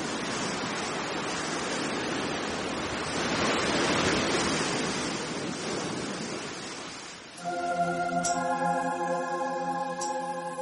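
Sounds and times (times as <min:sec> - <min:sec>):
rough sea waves crashing as a storm hits an island: 0:00.0 - 0:10.6
sustained droning musical tone: 0:07.4 - 0:10.6.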